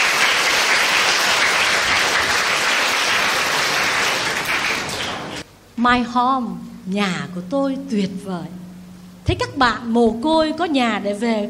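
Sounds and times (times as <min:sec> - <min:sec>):
audience applause: 0:00.0 - 0:05.4
speech: 0:05.8 - 0:08.6, 0:09.3 - 0:11.4.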